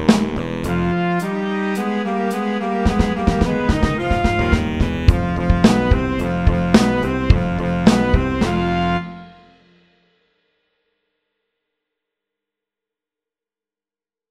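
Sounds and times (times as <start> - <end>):
fast funk music: 0.0 - 9.5.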